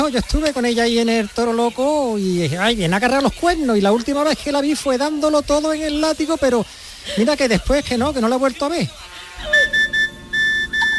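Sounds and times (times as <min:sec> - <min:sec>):
speech: 0:00.0 - 0:09.6
mobile phone message notification: 0:09.5 - 0:10.9.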